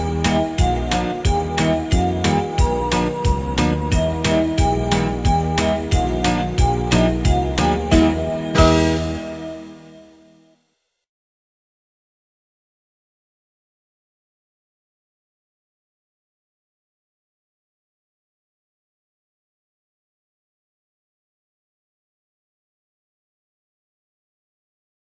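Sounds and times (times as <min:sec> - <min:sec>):
instrumental beat: 0:00.0 - 0:10.0.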